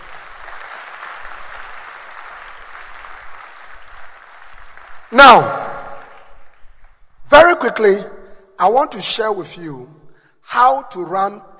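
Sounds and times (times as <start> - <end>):
audience clapping hands: 0.0 - 7.1
speech: 5.1 - 5.6, 7.6 - 11.5.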